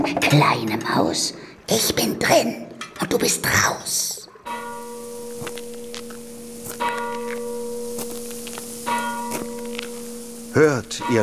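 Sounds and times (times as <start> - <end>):
speech: 0.0 - 4.2, 10.6 - 11.2
church bell striking the hour: 4.4 - 11.2.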